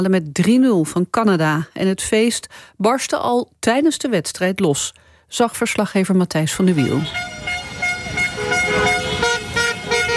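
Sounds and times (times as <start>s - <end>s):
speech: 0.0s - 7.6s
car horns honking in street celebration: 6.6s - 10.1s.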